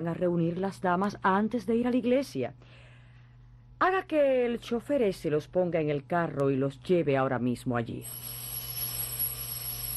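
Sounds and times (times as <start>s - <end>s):
speech: 0.0s - 2.8s, 3.8s - 8.4s
telephone ringing with electronic trill: 8.0s - 9.9s.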